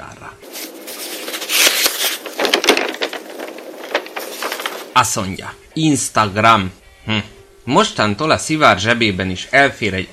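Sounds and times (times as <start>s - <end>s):
newspaper pages turning: 0.4s - 5.1s
speech: 5.0s - 10.1s.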